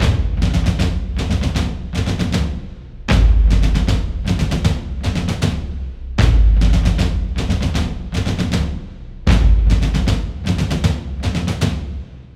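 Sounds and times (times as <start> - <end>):
drums: 0.0 - 12.3.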